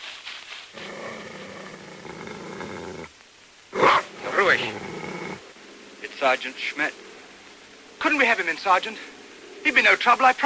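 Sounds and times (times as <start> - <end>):
scuffling noises: 0.0 - 1.4
leashed German shepherd growling and baring its teeth: 0.8 - 3.1, 3.8 - 5.4
speech: 6.2 - 7.1, 8.0 - 10.4.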